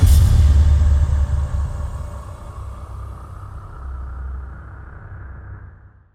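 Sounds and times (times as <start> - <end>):
impact: 0.0 - 3.9.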